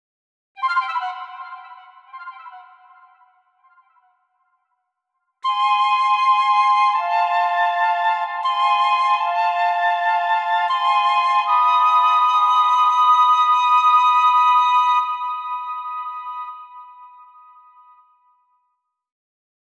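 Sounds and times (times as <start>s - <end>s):
flute melody: 0.6s - 4.0s, 5.4s - 18.2s.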